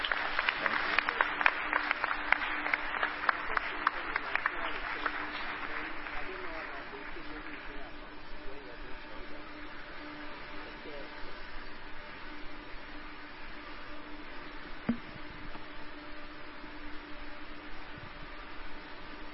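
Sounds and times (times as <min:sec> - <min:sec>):
audience clapping: 0:00.0 - 0:08.8.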